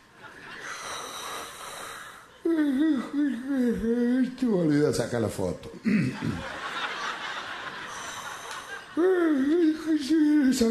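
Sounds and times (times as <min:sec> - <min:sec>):
laughter: 0:00.0 - 0:00.9, 0:05.9 - 0:10.5
person imitating a big yawn: 0:01.8 - 0:04.0
speech: 0:02.6 - 0:06.6, 0:09.0 - 0:10.6.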